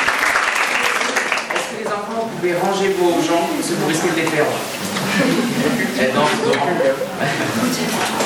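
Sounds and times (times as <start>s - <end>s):
audience applause for a group of students: 0.0s - 1.9s
speech: 2.4s - 8.2s
laughter: 4.8s - 8.2s.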